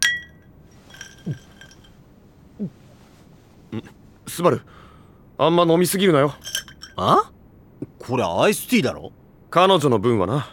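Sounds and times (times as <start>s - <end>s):
glasses clinking in a toast: 0.0s - 4.5s, 5.9s - 8.1s
speech: 1.2s - 1.5s, 2.6s - 2.8s, 3.7s - 4.8s, 5.4s - 10.5s.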